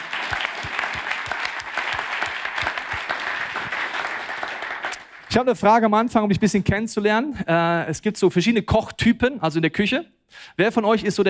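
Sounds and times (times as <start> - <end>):
audience clapping: 0.0 - 5.4
speech: 5.3 - 11.2.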